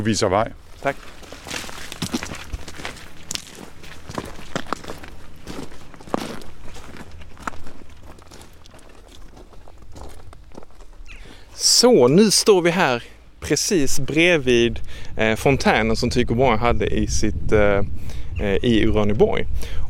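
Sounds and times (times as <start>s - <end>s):
speech: 0.0s - 1.2s, 11.8s - 19.8s
footsteps walking into Uraniborg house toward Tycho Brahe's fountain: 0.6s - 11.8s.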